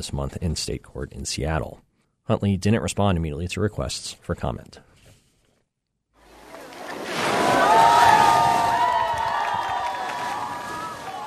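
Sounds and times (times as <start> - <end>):
speech: 0.0 - 4.9
splashing: 6.2 - 9.1
wash like surf: 6.2 - 11.2
crowd cheering at an outdoor cold-water plunge: 6.8 - 11.2.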